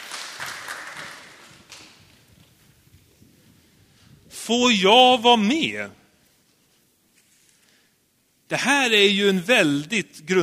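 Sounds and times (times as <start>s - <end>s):
group applause: 0.0s - 2.0s
speech: 4.5s - 6.0s, 8.5s - 10.4s.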